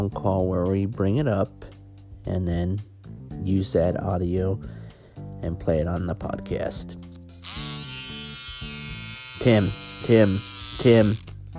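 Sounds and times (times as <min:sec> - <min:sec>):
speech: 0:00.0 - 0:04.8, 0:05.4 - 0:07.6, 0:09.4 - 0:11.5
vibrator buzzing: 0:07.4 - 0:11.3.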